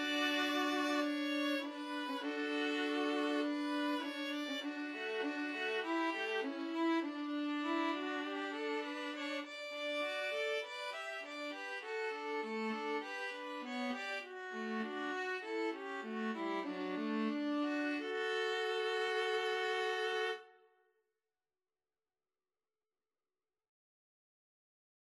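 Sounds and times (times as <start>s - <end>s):
string trio playing a folk tune: 0.0s - 20.4s.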